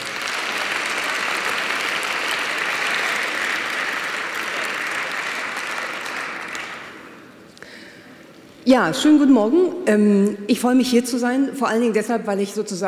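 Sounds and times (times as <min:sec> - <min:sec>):
audience applause: 0:00.0 - 0:07.3
speech: 0:08.7 - 0:12.8.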